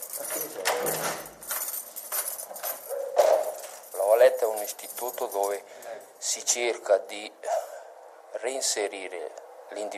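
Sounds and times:
footsteps echoing in corridors: 0.0s - 5.9s
keys jangling: 0.0s - 6.1s
speech: 4.7s - 7.5s, 8.4s - 9.9s.

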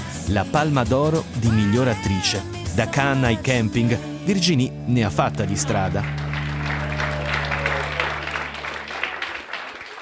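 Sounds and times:
speech: 0.3s - 6.2s
applause: 5.5s - 9.9s.

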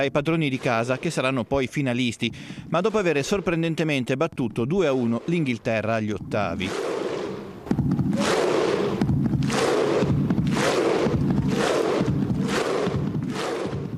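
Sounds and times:
speech: 0.0s - 6.9s
stadium crowd rhythmic Viking thunder clap chant: 6.6s - 13.9s.

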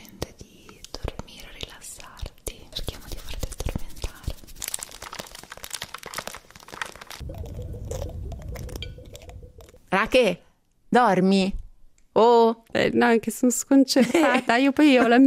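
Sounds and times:
ASMR video whispering: 0.0s - 4.4s
speech: 10.0s - 11.6s, 12.2s - 15.2s.

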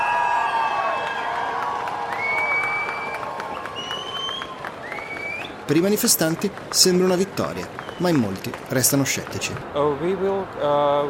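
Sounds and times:
large outdoor crowd in a square applauding: 0.0s - 9.7s
shrill whistles: 2.1s - 5.6s, 7.8s - 8.2s
speech: 5.7s - 11.0s.

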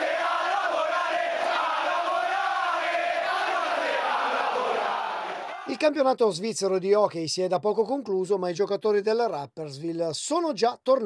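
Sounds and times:
hockey fans chanting: 0.0s - 5.8s
speech: 5.8s - 11.0s.

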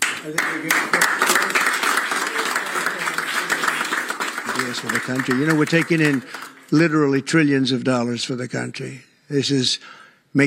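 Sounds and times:
group applauding: 0.0s - 7.1s
speech: 0.2s - 1.6s, 4.7s - 10.4s.

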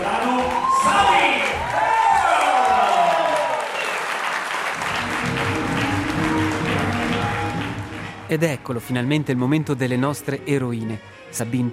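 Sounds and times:
audience applause and cheering: 0.0s - 8.4s
speech: 8.3s - 11.7s.

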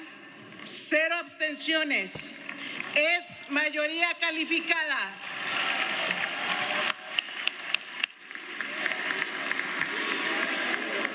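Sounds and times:
speech: 0.7s - 5.3s
parliament applause after a vote: 2.4s - 3.2s, 4.6s - 11.1s.

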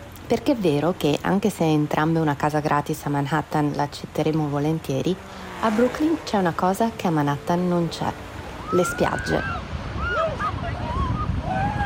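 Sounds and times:
wind: 0.0s - 11.8s
speech: 0.3s - 9.6s
rushing surf of the Atlantic at Brighton Beach: 1.2s - 11.8s
Polar Bear Club swimmers shouting and whooping running into the icy Atlantic: 8.5s - 11.8s.

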